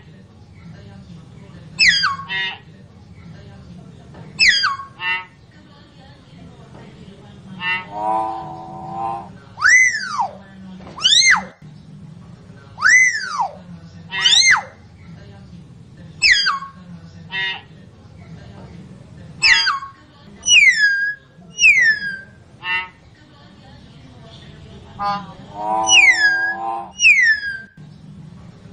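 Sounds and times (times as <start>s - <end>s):
common hill myna whistling song: 1.8s - 2.6s, 4.4s - 5.3s, 7.6s - 10.4s, 11.0s - 11.6s, 12.8s - 13.6s, 16.2s - 17.5s, 19.4s - 23.0s, 25.0s - 27.8s.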